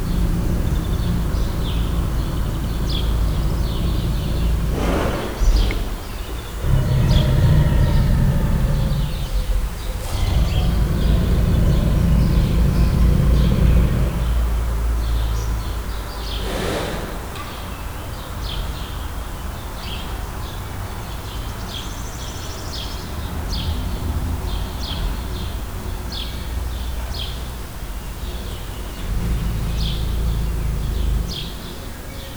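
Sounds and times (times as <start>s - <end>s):
quiet snoring of a Bengal tiger in a zoo: 0.0s - 15.2s, 16.2s - 17.6s, 28.3s - 32.3s
loud birds in a zoo: 0.0s - 32.3s.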